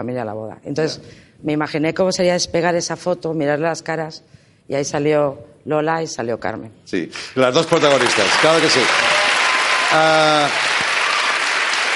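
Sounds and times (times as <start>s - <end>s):
speech: 0.0s - 9.1s, 9.9s - 10.7s
studio audience applause on a Spanish talk show: 7.4s - 11.9s.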